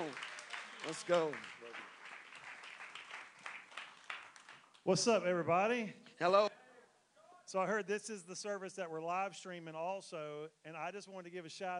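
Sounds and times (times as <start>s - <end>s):
audience applause: 0.0s - 4.8s
speech: 0.1s - 1.6s, 4.8s - 6.5s, 7.5s - 11.7s.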